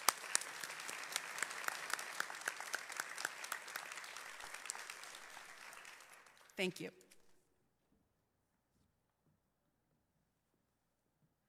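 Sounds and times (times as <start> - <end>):
audience applause: 0.0 - 6.8
speech: 6.6 - 7.0.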